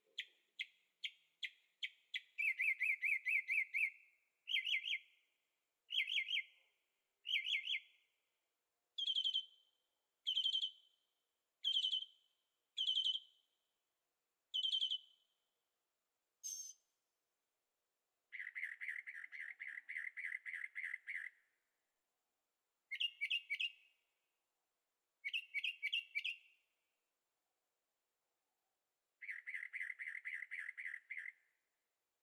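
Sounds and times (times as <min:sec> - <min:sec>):
bird singing: 0:00.0 - 0:05.2, 0:05.9 - 0:06.6, 0:07.2 - 0:08.0, 0:09.0 - 0:09.7, 0:10.3 - 0:10.9, 0:11.6 - 0:13.4, 0:14.5 - 0:15.2, 0:16.4 - 0:16.9, 0:18.3 - 0:21.5, 0:22.9 - 0:24.0, 0:25.2 - 0:26.6, 0:29.2 - 0:31.6.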